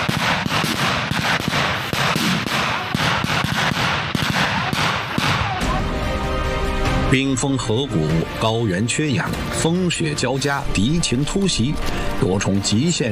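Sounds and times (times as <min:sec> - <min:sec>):
very dense gunfire: 0:00.0 - 0:05.8
speech: 0:07.1 - 0:13.1.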